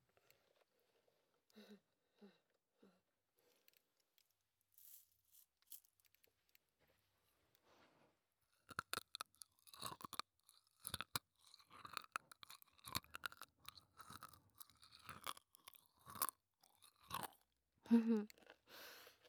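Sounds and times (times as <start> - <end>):
crunchy chocolate granules being chewed: 8.6 - 17.6.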